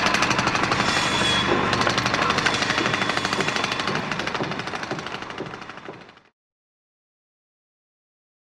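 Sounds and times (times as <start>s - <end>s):
workers building: 0.0s - 6.3s.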